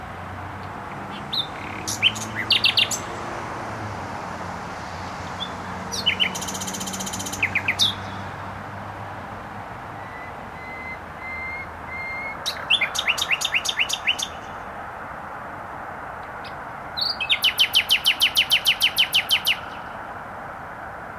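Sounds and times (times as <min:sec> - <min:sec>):
traffic rumble: 0:00.0 - 0:21.1
nightingale song: 0:00.6 - 0:03.4, 0:05.2 - 0:08.5, 0:09.9 - 0:14.6, 0:16.2 - 0:20.0.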